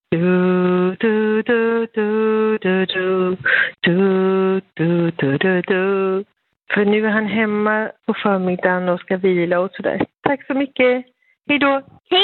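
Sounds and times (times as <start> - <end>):
person singing a symphony theme into a telephone voicemail: 0.0 - 7.2
speech: 0.1 - 0.4, 4.8 - 12.2.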